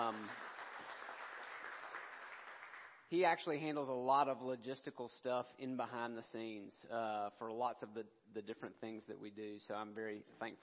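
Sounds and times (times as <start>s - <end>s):
speech: 0.0s - 0.5s, 3.1s - 10.6s
audience applause: 0.0s - 3.0s.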